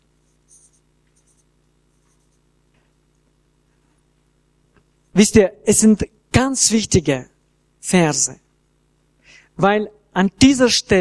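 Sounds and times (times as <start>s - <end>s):
low steady hum: 0.0s - 11.0s
pen scratching taking handwritten notes: 0.3s - 2.4s
speech: 5.2s - 8.4s, 9.3s - 11.0s.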